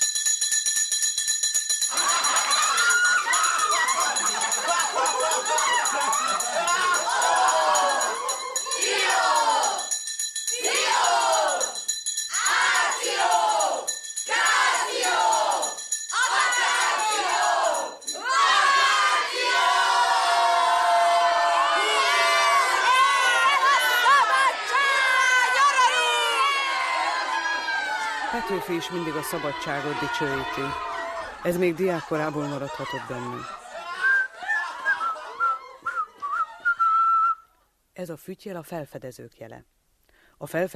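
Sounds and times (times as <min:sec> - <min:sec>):
school electric bell ringing: 0:00.0 - 0:10.6
laughter: 0:01.9 - 0:09.5, 0:21.5 - 0:37.0
schoolchildren shouting and yelling: 0:01.9 - 0:09.9, 0:10.6 - 0:36.6
speech: 0:28.7 - 0:33.6, 0:38.0 - 0:39.7, 0:40.4 - 0:40.7.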